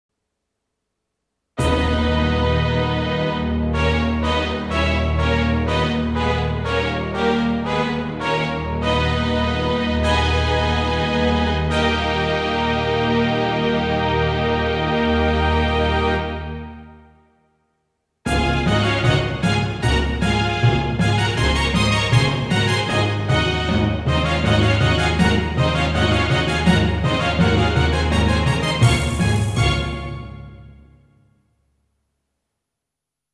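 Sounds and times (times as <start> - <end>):
music: 1.6 - 32.2.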